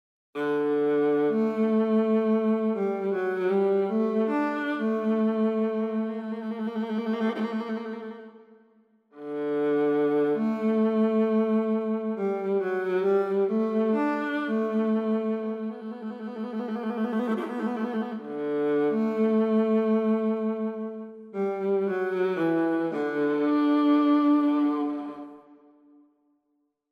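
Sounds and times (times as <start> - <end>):
emotional expressive viola with ornaments: 0.4 - 8.4, 9.2 - 25.7.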